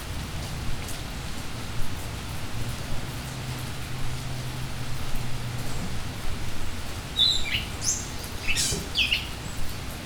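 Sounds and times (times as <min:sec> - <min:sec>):
hissing rain-like background: 0:00.0 - 0:10.0
bird chirping: 0:07.2 - 0:09.6.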